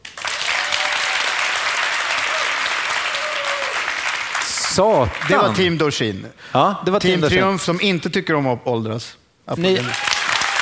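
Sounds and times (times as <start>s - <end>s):
audience applauding: 0.0s - 5.8s, 9.6s - 10.5s
speech: 4.8s - 10.1s.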